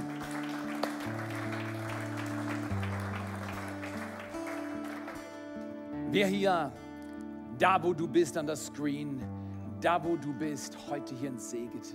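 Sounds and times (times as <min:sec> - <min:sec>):
audience applause: 0:00.0 - 0:05.4
speech: 0:06.1 - 0:06.8, 0:07.6 - 0:11.9.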